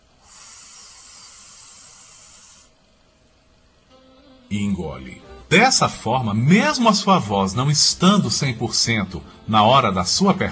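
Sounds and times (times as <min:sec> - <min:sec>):
air sucked in through pursed lips: 0:00.0 - 0:02.9
speech: 0:04.5 - 0:10.5.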